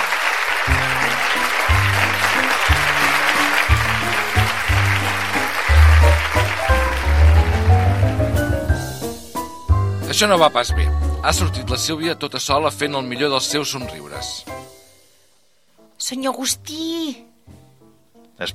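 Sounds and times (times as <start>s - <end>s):
loud audience applause: 0.0s - 8.8s
speech: 10.2s - 14.6s, 16.0s - 17.3s, 18.4s - 18.5s.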